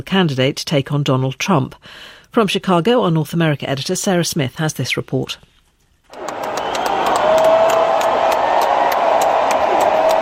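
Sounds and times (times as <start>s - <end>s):
speech: 0.0s - 5.5s
faint whistles: 6.1s - 9.3s
crowd cheering and applauding Joe Biden at the Democratic convention in Chicago: 6.1s - 10.2s.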